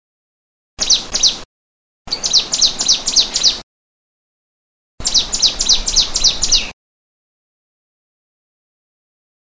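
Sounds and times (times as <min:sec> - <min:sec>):
prenjak lumut bird calling: 0:00.8 - 0:01.4, 0:02.1 - 0:03.6, 0:05.0 - 0:06.8.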